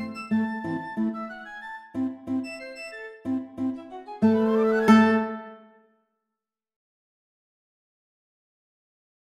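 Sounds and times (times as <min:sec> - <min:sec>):
flute: 0:00.0 - 0:05.9
guitar: 0:00.0 - 0:05.9.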